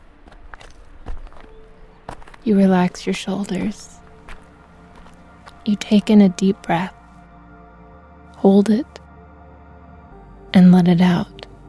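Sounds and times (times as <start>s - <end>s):
footsteps crunching over a dirt trail: 0.0s - 5.8s
speech: 2.4s - 4.0s, 5.6s - 7.0s, 8.4s - 9.0s, 10.6s - 11.3s.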